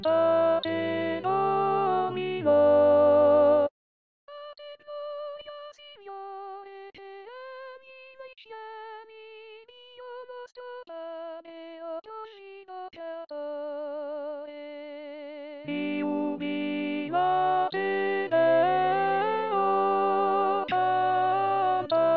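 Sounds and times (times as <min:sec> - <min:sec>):
contralto voices singing: 0:00.0 - 0:03.0, 0:15.7 - 0:22.1.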